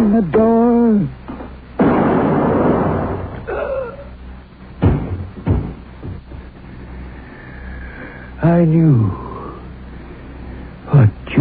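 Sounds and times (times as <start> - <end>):
brief thin whine: 0.0 - 11.4
speech: 0.1 - 1.3, 8.6 - 9.2
pistol shots: 1.8 - 3.4.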